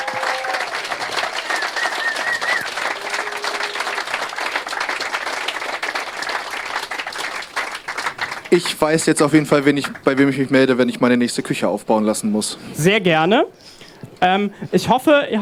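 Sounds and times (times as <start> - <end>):
audience applause: 0.0 - 9.0
speech: 8.5 - 15.4.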